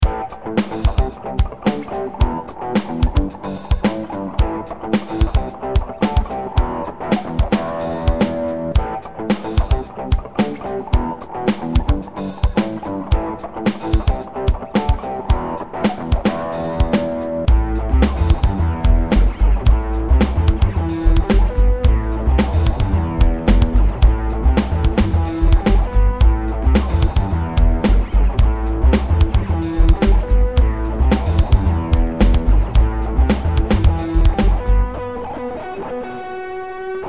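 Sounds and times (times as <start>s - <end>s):
rock music: 0.0s - 37.0s.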